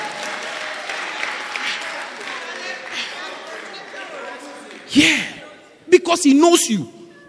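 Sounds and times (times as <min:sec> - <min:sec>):
audience clapping: 0:00.0 - 0:05.2
speech: 0:06.1 - 0:07.0.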